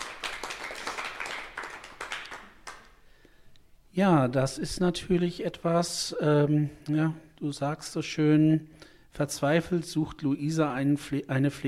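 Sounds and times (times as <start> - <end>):
small indoor audience applauding: 0.0 - 3.0
speech: 4.0 - 11.6.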